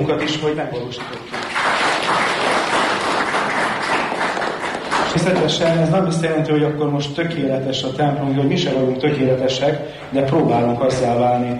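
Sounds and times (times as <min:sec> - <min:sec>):
speech: 0:00.0 - 0:02.2, 0:05.2 - 0:11.5
church congregation clapping: 0:00.0 - 0:06.2.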